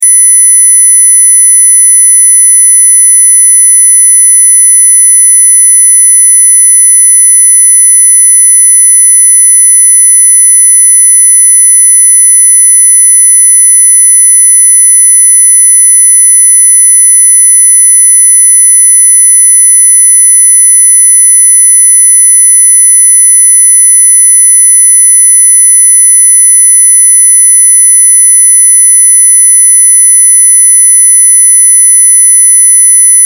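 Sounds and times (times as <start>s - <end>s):
square wave test tone: 0.0s - 33.2s.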